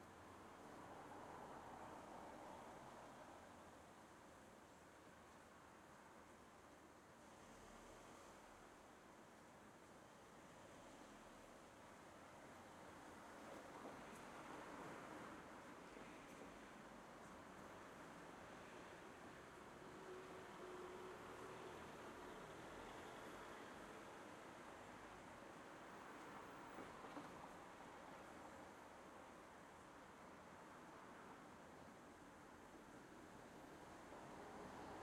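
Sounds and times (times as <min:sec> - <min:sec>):
light traffic in a suburb on a quiet afternoon: 0:00.0 - 0:35.0.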